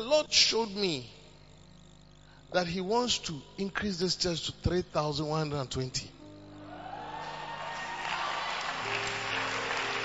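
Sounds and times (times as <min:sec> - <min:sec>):
speech: 0:00.0 - 0:01.2, 0:02.5 - 0:06.2
audience clapping: 0:06.9 - 0:10.0.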